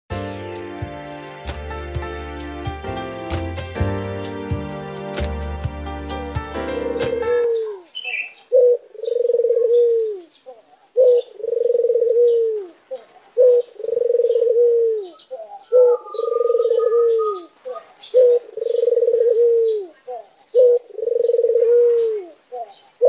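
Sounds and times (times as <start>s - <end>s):
white Barbary dove cooing: 6.8s - 23.0s.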